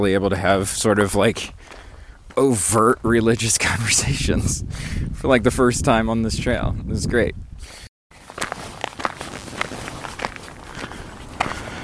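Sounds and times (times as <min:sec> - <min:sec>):
speech: 0:00.0 - 0:01.8, 0:02.4 - 0:07.8
footsteps walking beside a highway in the extreme heat of the meseta: 0:01.6 - 0:03.1, 0:08.1 - 0:11.8.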